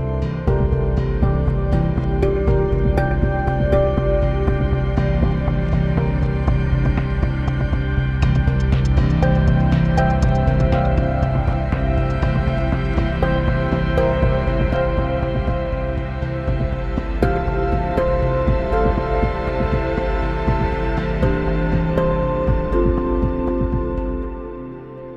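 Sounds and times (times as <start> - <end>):
pan drum: 0.2 - 24.8.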